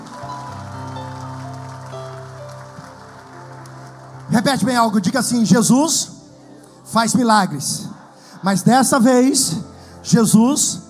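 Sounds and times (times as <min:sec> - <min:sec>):
audience applause: 0:00.0 - 0:05.1
speech: 0:04.3 - 0:06.2, 0:06.9 - 0:10.8.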